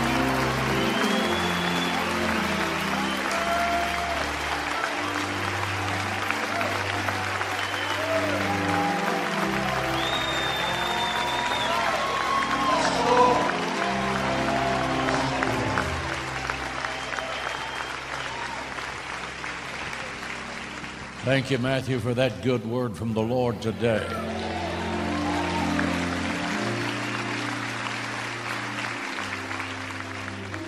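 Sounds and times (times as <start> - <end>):
audience clapping hands in praise: 0.0 - 30.6
speech: 21.3 - 24.3.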